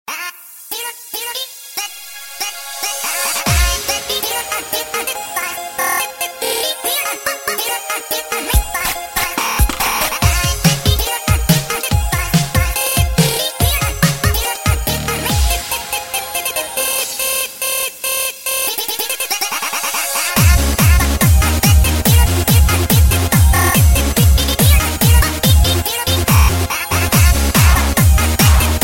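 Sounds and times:
hard dance music: 0:00.7 - 0:28.8.

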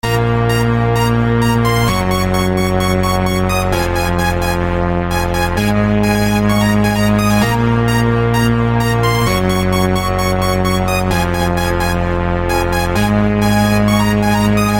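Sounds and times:
melody: 0:00.0 - 0:14.7.

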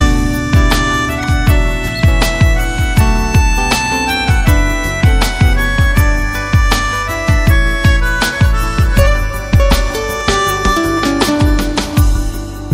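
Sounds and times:
sad flute melody: 0:00.0 - 0:12.7.

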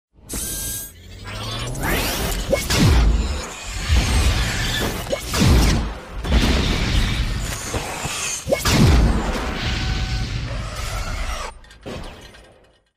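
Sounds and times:
plasma caster firing: 0:01.8 - 0:10.4.

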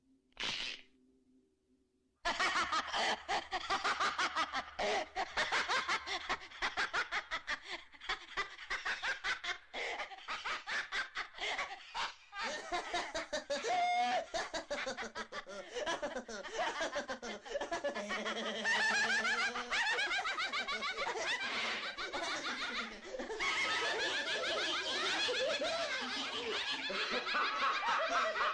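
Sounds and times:
evil laugh: 0:02.3 - 0:28.5.

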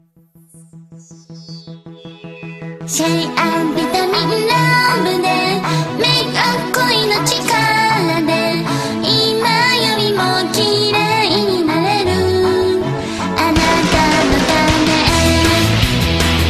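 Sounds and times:
cute Japanese song: 0:02.0 - 0:15.9.

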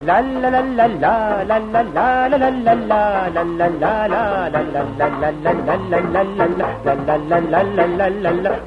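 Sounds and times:
60s style la la la singing: 0:00.0 - 0:08.6.

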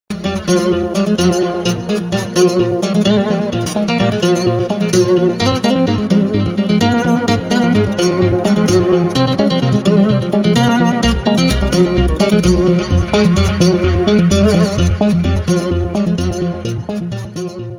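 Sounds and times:
guitar SMS tone: 0:00.1 - 0:17.7.

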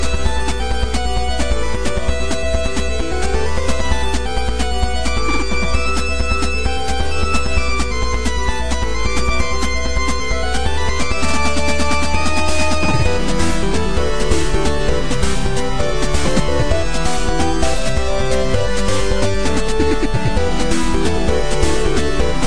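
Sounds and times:
8-bit music: 0:00.0 - 0:22.4.

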